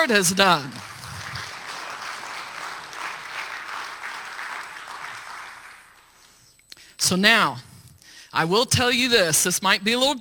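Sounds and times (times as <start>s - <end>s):
speech: 0.0s - 0.9s, 7.0s - 7.7s, 8.3s - 10.1s
audience hand clapping: 0.0s - 6.4s.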